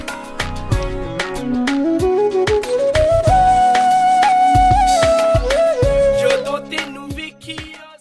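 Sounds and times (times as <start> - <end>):
bansuri bamboo flute: 1.6 - 7.3.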